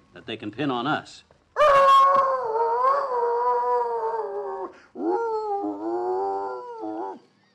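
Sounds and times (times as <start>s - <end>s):
speech: 0.2s - 1.3s
dog howling musically: 1.6s - 7.2s.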